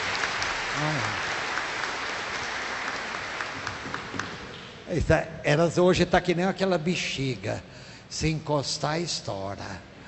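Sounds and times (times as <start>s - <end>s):
applause: 0.0s - 4.7s
speech: 0.8s - 1.3s, 4.9s - 9.9s.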